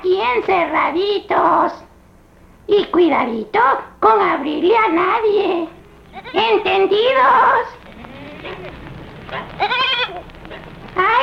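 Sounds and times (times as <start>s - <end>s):
speech: 0.3s - 1.9s, 2.7s - 7.8s, 9.3s - 11.2s
faint talk: 3.6s - 10.3s
goat bleating: 5.8s - 11.2s.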